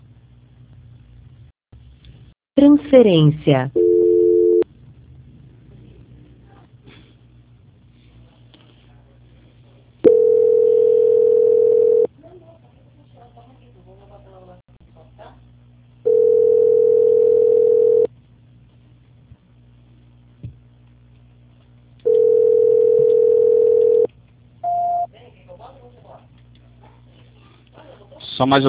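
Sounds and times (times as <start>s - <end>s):
speech: 2.6s - 3.8s, 28.4s - 28.6s
unanswered telephone call ringback tone: 3.8s - 4.6s, 10.1s - 12.1s, 16.1s - 18.1s, 22.1s - 25.1s.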